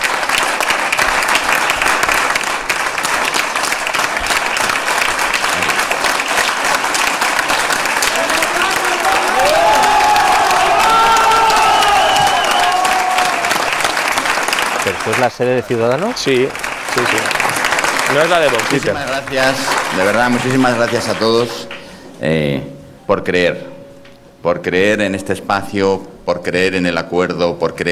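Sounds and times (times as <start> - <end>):
large crowd applauding: 0.0 - 22.1
cheers and whoops: 8.1 - 14.2
speech: 15.1 - 17.4, 18.1 - 23.7, 24.4 - 27.9.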